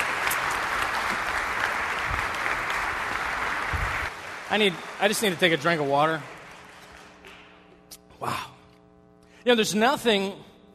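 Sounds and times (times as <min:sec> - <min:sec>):
audience applause: 0:00.0 - 0:07.4
speech: 0:04.5 - 0:06.4, 0:09.4 - 0:10.5.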